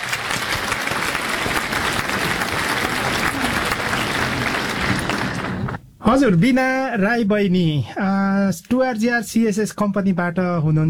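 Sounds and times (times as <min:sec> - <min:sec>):
studio audience applause for a guest on a weekly radio quiz programme: 0:00.0 - 0:05.8
speech: 0:06.1 - 0:10.8.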